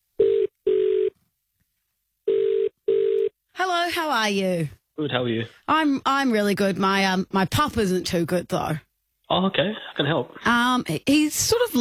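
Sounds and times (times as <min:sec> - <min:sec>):
phone line ringback tone: 0:00.2 - 0:01.1, 0:02.3 - 0:03.3
speech: 0:03.9 - 0:11.7.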